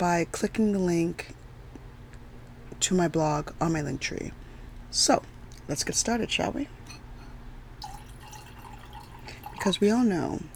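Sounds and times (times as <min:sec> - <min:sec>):
speech: 0:00.0 - 0:01.4, 0:02.8 - 0:06.8, 0:09.6 - 0:10.5
faint low hum: 0:00.0 - 0:10.5
red wine poured into a glass: 0:07.8 - 0:10.5.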